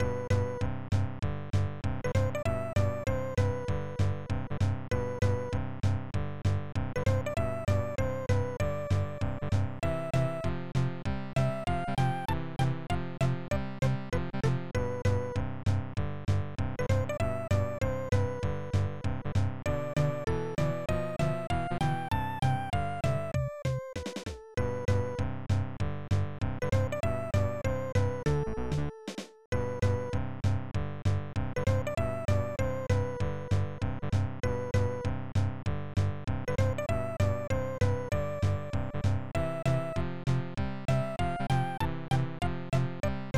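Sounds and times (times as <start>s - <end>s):
level game music: 0.0s - 43.3s.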